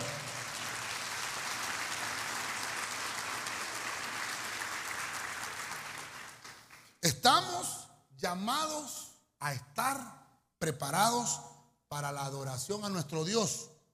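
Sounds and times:
audience clapping: 0.0 - 7.0
speech: 8.3 - 13.7.

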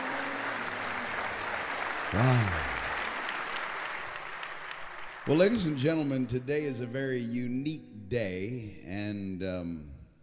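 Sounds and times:
audience hand clapping applause: 0.0 - 6.6
speech: 2.1 - 2.8, 5.3 - 9.9.

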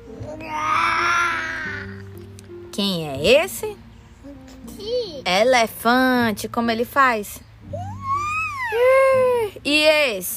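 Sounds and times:
child imitating a lion's roar: 0.3 - 2.0
speech: 2.8 - 3.8, 5.2 - 7.5, 8.7 - 10.3.

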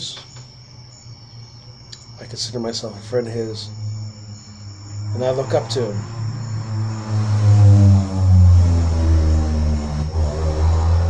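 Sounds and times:
speech: 2.2 - 3.8, 5.2 - 6.2
loud car passing by: 3.6 - 11.0.

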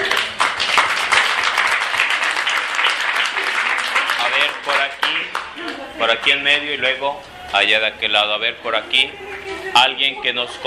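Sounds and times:
audience applause: 0.0 - 5.9
speech: 6.1 - 10.6.

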